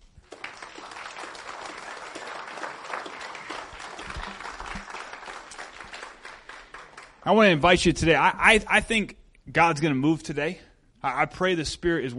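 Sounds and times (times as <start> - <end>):
church congregation applauding to welcome a pastor: 0.0 - 7.6
speech: 7.2 - 12.1.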